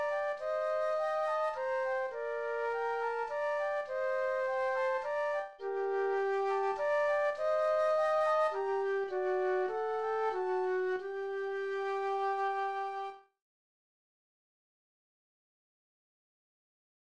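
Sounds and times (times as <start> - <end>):
minuet flute duet: 0.0 - 13.3.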